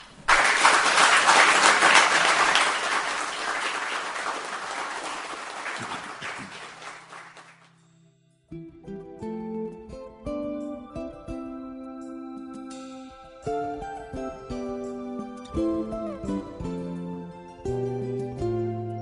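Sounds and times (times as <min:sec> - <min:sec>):
audience applause at a live poetry evening at the Kolarac Endowment in Belgrade: 0:00.0 - 0:07.7
musical notes: 0:08.5 - 0:19.0.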